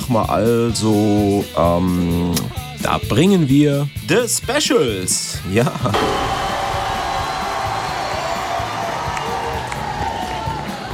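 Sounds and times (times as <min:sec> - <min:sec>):
speech: 0:00.1 - 0:06.5
large crowd cheering and shouting: 0:06.0 - 0:10.9.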